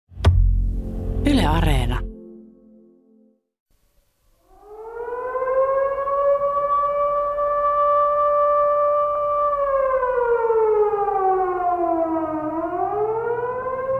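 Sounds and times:
low hum: 0.2 - 2.3
speech: 1.5 - 2.1
air raid siren wailing: 4.4 - 13.9.

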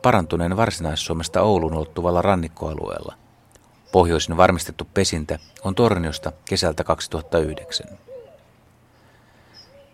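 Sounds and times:
Eurasian collared dove cooing: 0.0 - 2.3, 5.5 - 8.5, 9.5 - 9.9
speech: 0.0 - 3.2, 3.9 - 8.1
steady hiss: 0.0 - 9.9.

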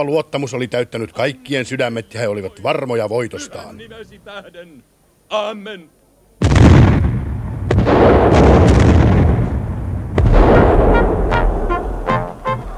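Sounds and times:
speech: 0.0 - 6.8
artillery cannon fire in battle: 6.4 - 12.1.

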